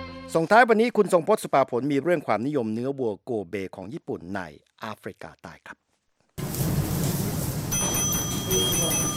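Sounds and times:
speech: 0.3s - 5.8s
restaurant kitchen clatter: 6.7s - 9.1s
bright metallic ringing tones: 7.7s - 9.1s.

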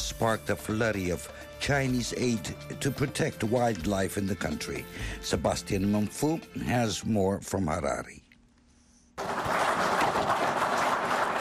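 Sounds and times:
speech: 0.2s - 8.2s
Zimbabwean officials clapping after receiving anti-poaching equipment: 9.2s - 11.3s.

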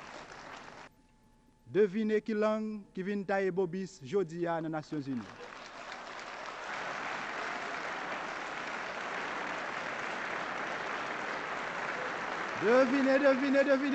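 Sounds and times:
audience applause: 0.0s - 0.9s, 5.1s - 13.9s
speech: 1.7s - 5.4s, 12.6s - 13.9s.

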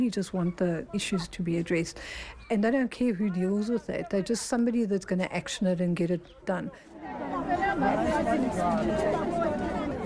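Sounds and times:
speech: 0.0s - 9.6s
crowd chattering at a municipal office: 0.0s - 10.0s.

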